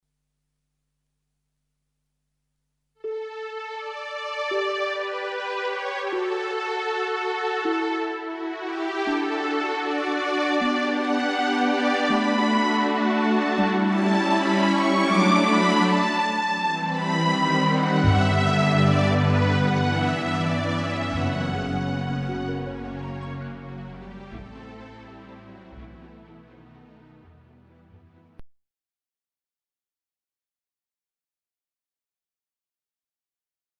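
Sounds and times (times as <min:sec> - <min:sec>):
romantic song: 0:03.1 - 0:27.4.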